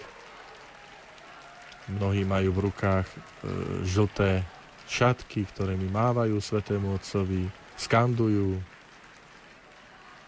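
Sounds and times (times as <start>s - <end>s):
spontaneous crowd applause: 0.0s - 10.2s
speech: 1.9s - 8.7s.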